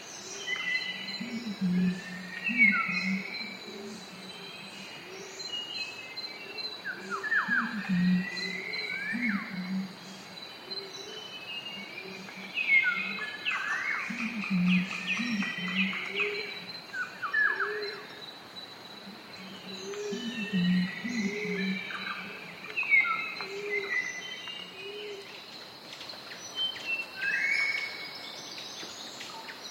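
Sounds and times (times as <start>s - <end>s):
fruit pigeons: 0.0s - 5.4s, 6.4s - 18.1s, 18.9s - 28.0s
hornbills: 0.5s - 5.3s, 6.8s - 18.1s, 19.0s - 25.3s.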